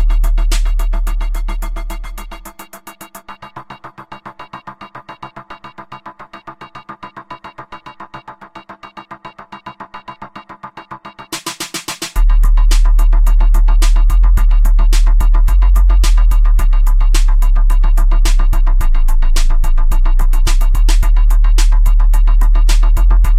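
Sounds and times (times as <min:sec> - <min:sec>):
bass waves: 0:00.0 - 0:02.4, 0:12.2 - 0:23.3.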